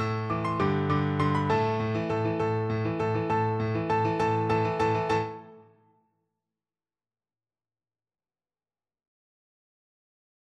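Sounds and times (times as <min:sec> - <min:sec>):
pirate-themed piano duet: 0:00.0 - 0:05.9.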